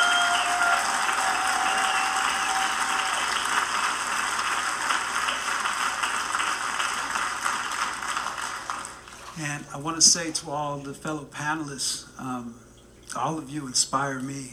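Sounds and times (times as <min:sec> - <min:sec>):
audience applause: 0:00.0 - 0:09.0
speech: 0:09.7 - 0:14.5.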